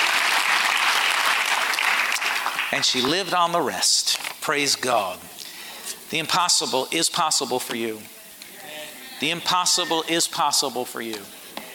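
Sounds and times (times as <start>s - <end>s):
audience applause: 0.0s - 3.1s
speech: 2.7s - 5.4s, 6.1s - 8.2s, 9.2s - 11.4s.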